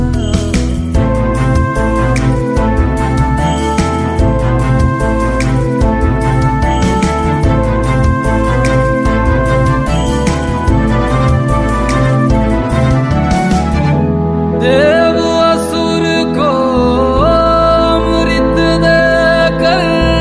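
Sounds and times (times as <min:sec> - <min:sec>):
Hindi Bollywood ringtone: 0:00.2 - 0:20.0.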